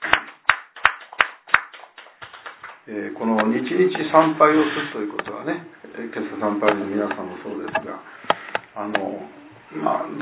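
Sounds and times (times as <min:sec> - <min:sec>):
small audience clapping: 0:00.0 - 0:03.5
speech: 0:02.9 - 0:10.2.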